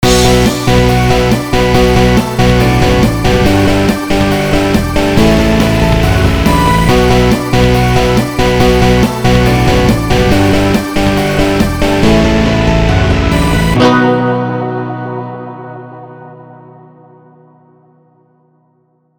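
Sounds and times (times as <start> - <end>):
jingle: 0.0 - 15.2.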